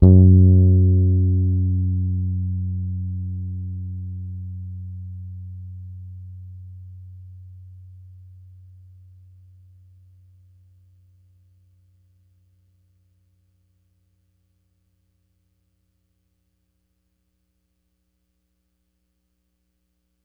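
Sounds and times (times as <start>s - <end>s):
Pedulla Thunderbass bass guitar playing E flat F sharp 3 hard: 0.0s - 8.1s.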